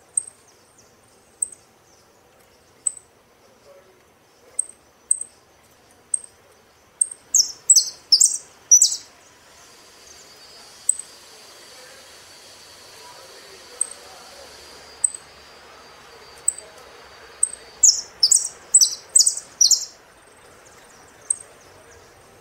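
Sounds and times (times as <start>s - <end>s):
faint background hiss: 0.0s - 22.3s
saffron finch song of chips and buzzy notes: 0.0s - 22.3s.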